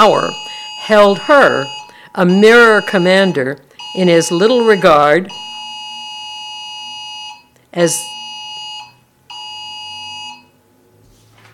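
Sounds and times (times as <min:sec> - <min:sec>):
speech: 0:00.0 - 0:05.5, 0:07.7 - 0:08.1
phone alarm going off: 0:00.0 - 0:10.6.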